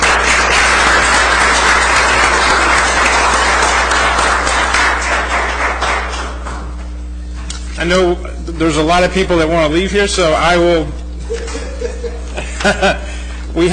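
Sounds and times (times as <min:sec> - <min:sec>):
round of applause: 0:00.0 - 0:06.8
speech: 0:07.8 - 0:11.0, 0:12.6 - 0:13.7
laughter: 0:11.2 - 0:13.4.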